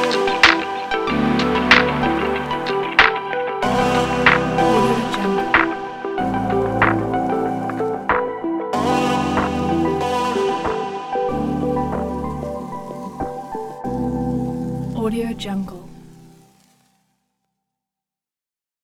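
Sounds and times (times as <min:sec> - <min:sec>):
atmospheric hip hop music: 0:00.0 - 0:15.0.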